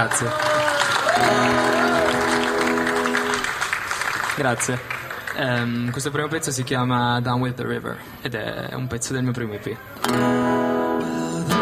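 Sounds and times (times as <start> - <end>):
speech: 0.0 - 0.5, 1.1 - 1.8, 4.4 - 10.8
audience applause: 0.0 - 6.4.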